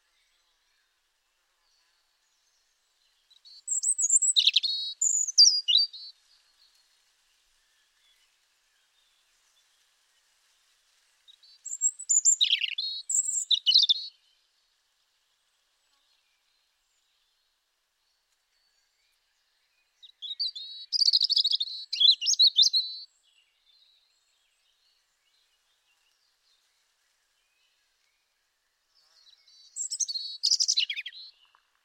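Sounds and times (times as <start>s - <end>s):
European robin song: 3.2s - 6.8s, 11.4s - 14.3s, 20.0s - 26.4s, 29.0s - 31.7s.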